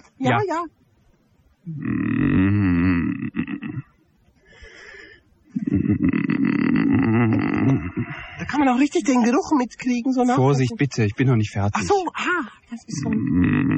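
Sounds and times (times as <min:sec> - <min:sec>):
speech: 0:00.2 - 0:00.8, 0:01.6 - 0:02.0, 0:08.6 - 0:13.7
man growling: 0:01.6 - 0:04.0, 0:05.5 - 0:08.4, 0:12.9 - 0:13.7.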